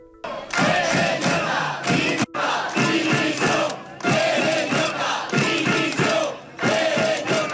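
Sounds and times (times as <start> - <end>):
protest crowd shouting for resignation: 0.2 - 7.5.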